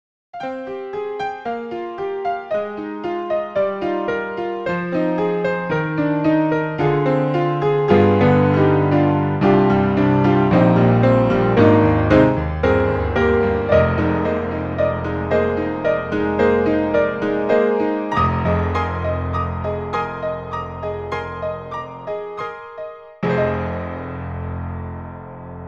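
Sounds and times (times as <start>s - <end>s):
piano: 0.4s - 25.6s.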